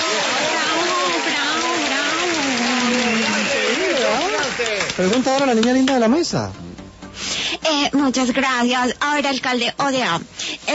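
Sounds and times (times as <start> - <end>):
crowd clapping: 0.0 - 6.2
speech: 5.0 - 6.7, 7.9 - 10.7.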